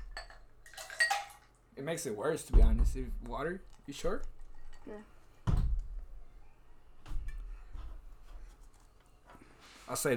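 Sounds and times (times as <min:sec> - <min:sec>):
cup clinking: 0:00.2 - 0:01.5
speech: 0:01.8 - 0:05.2, 0:09.9 - 0:10.1.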